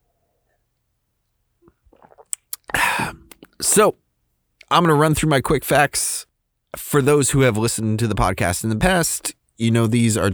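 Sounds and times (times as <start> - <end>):
person sipping beer: 1.6 - 3.9
speech: 3.6 - 4.0, 4.7 - 10.3.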